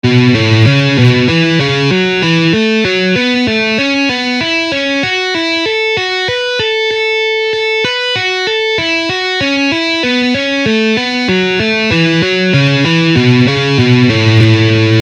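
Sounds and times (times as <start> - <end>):
guitar scale exercises: 0.0 - 15.0.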